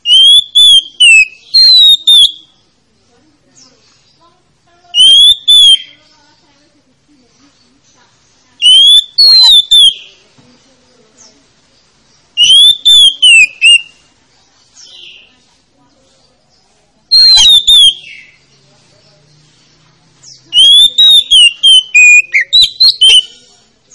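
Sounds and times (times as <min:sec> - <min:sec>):
Oriental magpie-robin song of bright whistled phrases: 0:00.0 - 0:02.7, 0:04.9 - 0:06.1, 0:08.6 - 0:10.2, 0:12.3 - 0:15.3, 0:17.0 - 0:18.5, 0:20.2 - 0:23.9.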